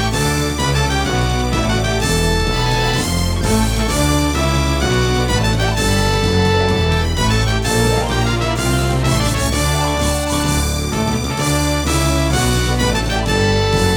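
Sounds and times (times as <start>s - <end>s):
Roland SC-55mkII sound module: 0.0s - 13.9s.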